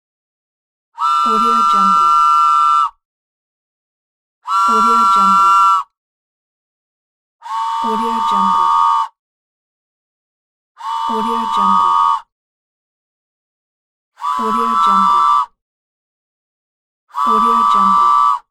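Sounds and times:
toy train whistle: 1.0 - 3.0, 4.4 - 6.0, 7.4 - 9.2, 10.8 - 12.3, 14.2 - 15.6, 17.1 - 18.5.

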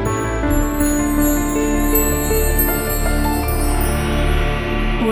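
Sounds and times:
classic logo sound: 0.1 - 5.0.

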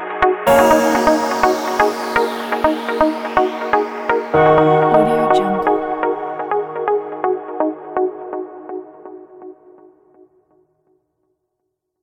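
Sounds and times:
deep house music: 0.2 - 8.0.

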